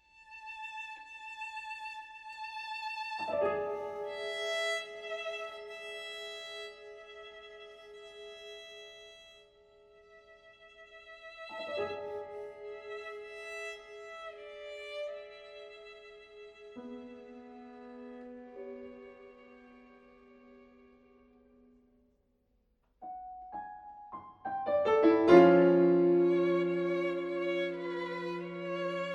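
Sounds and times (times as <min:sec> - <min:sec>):
piano quartet playing tranquillo: 0:03.3 - 0:08.6, 0:11.3 - 0:20.2, 0:23.0 - 0:29.1.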